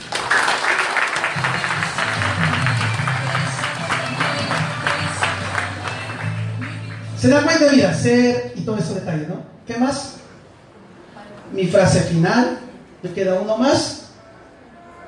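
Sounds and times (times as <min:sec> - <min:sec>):
loud audience applause: 0:00.0 - 0:07.0
speech: 0:07.2 - 0:10.2, 0:11.5 - 0:14.0.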